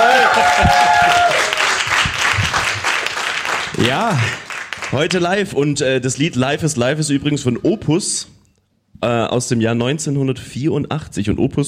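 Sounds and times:
audience applause: 0:00.0 - 0:05.2
speech: 0:03.9 - 0:08.4, 0:09.0 - 0:11.6.

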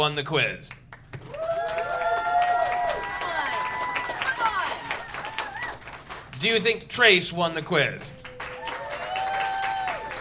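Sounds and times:
speech: 0:00.0 - 0:00.8, 0:06.4 - 0:08.2
audience clapping: 0:00.7 - 0:06.8, 0:07.7 - 0:10.2
voices whooping and cheering: 0:01.2 - 0:05.8, 0:08.1 - 0:10.2.

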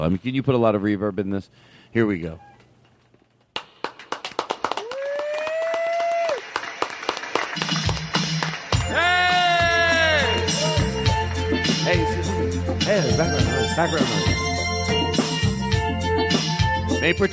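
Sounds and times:
speech: 0:00.0 - 0:02.5, 0:13.2 - 0:14.4, 0:17.0 - 0:17.3
loud applause: 0:03.8 - 0:11.4
thumping bass line: 0:09.6 - 0:17.3.

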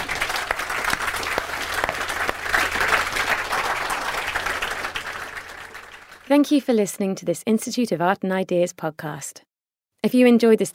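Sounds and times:
audience applause: 0:00.0 - 0:06.3
speech: 0:06.3 - 0:10.7.

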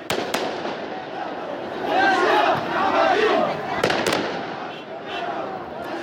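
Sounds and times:
firecracker-like bangs: 0:00.0 - 0:01.2, 0:03.8 - 0:04.8
large street crowd chanting and shouting: 0:00.0 - 0:06.0.

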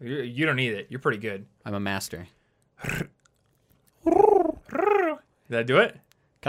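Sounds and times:
speech: 0:00.0 - 0:03.1, 0:04.7 - 0:06.4
person imitating a bird's cooing: 0:04.0 - 0:05.2.

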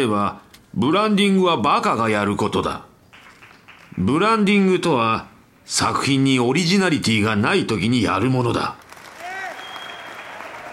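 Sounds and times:
speech: 0:00.0 - 0:02.9, 0:04.0 - 0:08.8
shareholders cheering and applauding: 0:08.9 - 0:10.7.

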